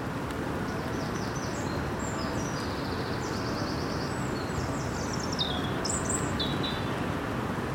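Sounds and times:
wind rushing through trees, approaching storm: 0.0s - 7.7s
small birds chirping and twittering: 0.6s - 7.1s.

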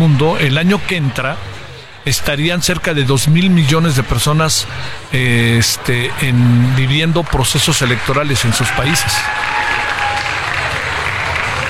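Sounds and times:
speech: 0.2s - 9.6s
audience applause: 5.8s - 11.6s.

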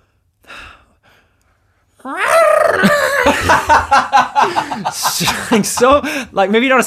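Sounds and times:
human voice imitating a goat's cry: 2.0s - 3.3s
laughter: 2.8s - 6.2s.

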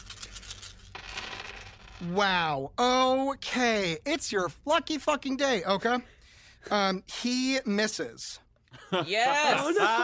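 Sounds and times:
dice rolling on a hard surface: 0.1s - 2.2s
speech: 2.0s - 10.0s.

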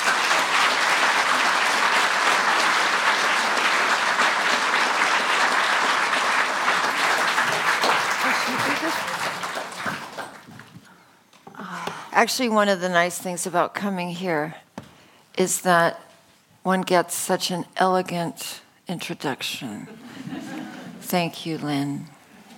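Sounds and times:
audience applause welcoming two speakers at the House of Literature: 0.0s - 10.8s
speech: 12.2s - 14.6s, 15.4s - 16.0s, 16.6s - 20.5s, 21.1s - 22.2s.

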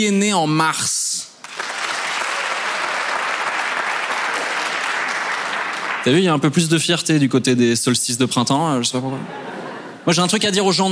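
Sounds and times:
speech: 0.0s - 1.0s, 6.0s - 10.9s
audience applause: 1.4s - 6.2s
laughter: 9.1s - 10.1s.

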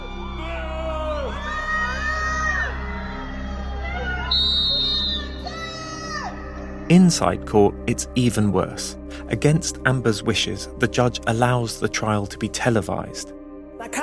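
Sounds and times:
crowd cheering and heckling: 0.0s - 6.6s
speech: 6.9s - 14.0s.

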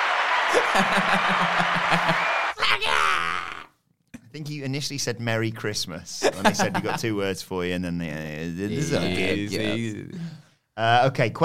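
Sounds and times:
applause sound effect: 0.0s - 2.6s
laughter: 0.4s - 3.0s, 6.2s - 7.2s
speech: 0.5s - 3.5s, 4.4s - 11.4s.

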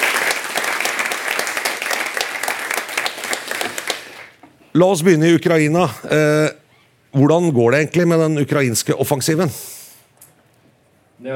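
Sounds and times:
audience applause: 0.0s - 4.4s
speech: 4.7s - 9.7s.

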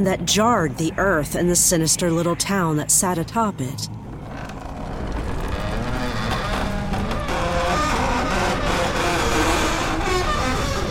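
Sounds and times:
speech: 0.0s - 4.0s
giant door slowly creaking open: 4.0s - 10.8s.

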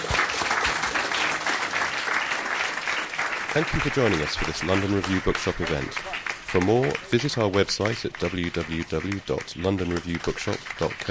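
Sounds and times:
audience round of applause: 0.0s - 11.0s
speech: 3.6s - 11.0s.

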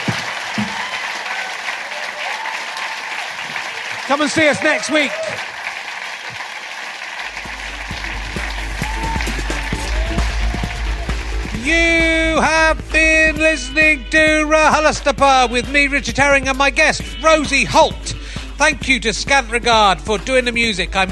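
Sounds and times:
audience applause: 0.0s - 12.6s
speech: 4.1s - 5.5s, 11.7s - 21.1s.

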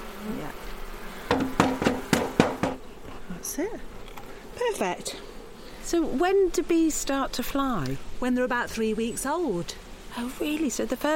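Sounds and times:
heavy beehive lid being put on: 1.2s - 2.9s
speech: 3.4s - 4.0s, 4.6s - 5.3s, 5.9s - 11.1s.

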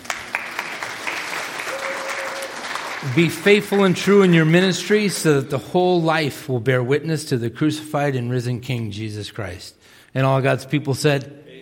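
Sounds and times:
audience applauding: 0.0s - 5.4s
speech: 3.0s - 11.4s.

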